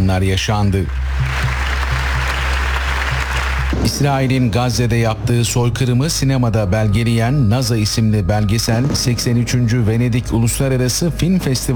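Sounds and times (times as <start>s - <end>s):
speech: 0.1s - 1.6s, 3.8s - 11.7s
applause at a documentary premiere at the Venice Film Festival: 0.6s - 4.4s
low hum: 0.8s - 11.7s.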